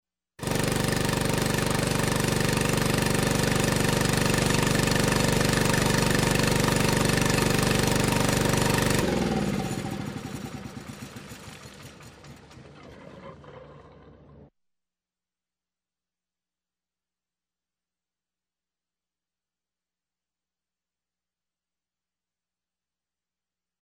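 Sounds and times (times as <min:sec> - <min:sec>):
pump shutting down: 0:00.4 - 0:12.7.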